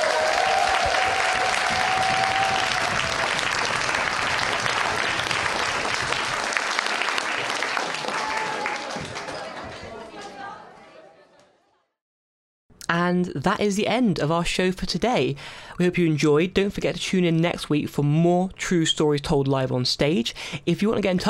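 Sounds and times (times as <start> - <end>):
audience round of applause: 0.0 - 10.7
speech: 13.2 - 21.2.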